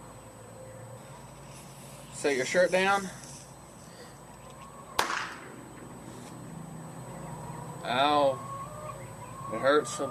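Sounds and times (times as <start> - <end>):
speech: 2.2 - 3.2, 7.9 - 8.4, 9.6 - 10.0
firecracker bang for a bullet hit effect: 5.0 - 5.5.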